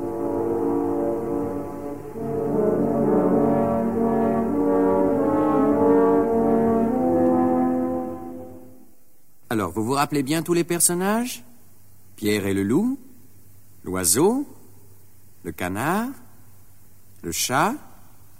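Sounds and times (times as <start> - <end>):
three French horns playing a theme: 0.0 - 9.0
speech: 9.5 - 11.5, 12.2 - 13.0, 13.8 - 14.6, 15.4 - 16.2, 17.2 - 17.9.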